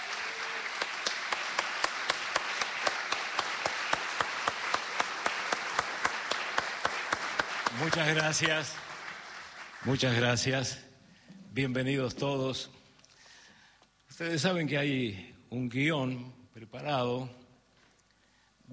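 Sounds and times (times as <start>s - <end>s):
audience applause: 0.0s - 10.5s
sharp claps in an even rhythmic beat: 0.0s - 10.5s
speech: 7.8s - 8.8s, 9.8s - 10.9s, 11.6s - 12.8s, 14.2s - 17.4s.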